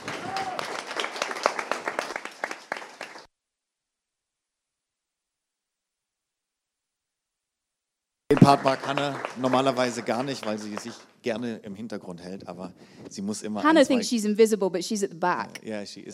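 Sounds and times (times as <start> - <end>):
audience applause: 0.0 - 3.3, 8.3 - 11.1
speech: 8.4 - 16.1.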